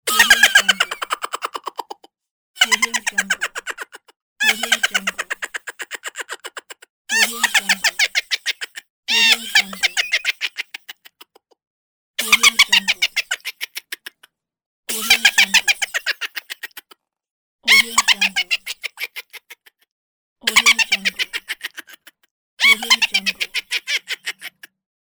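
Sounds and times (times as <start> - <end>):
cartoon character laughing hilariously: 0.1 - 11.6, 12.2 - 14.3, 14.9 - 17.0, 17.7 - 19.8, 20.4 - 24.7.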